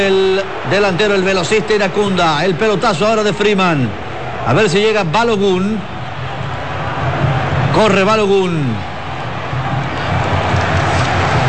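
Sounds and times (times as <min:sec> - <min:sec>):
speech: 0:00.0 - 0:05.9, 0:07.8 - 0:08.9
stadium crowd applauding: 0:00.0 - 0:11.4.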